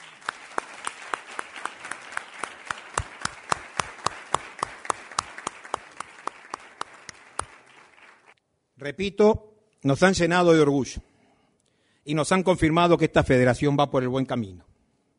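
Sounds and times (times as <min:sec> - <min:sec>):
audience applause: 0:00.0 - 0:08.4
speech: 0:08.8 - 0:11.1, 0:12.0 - 0:14.7.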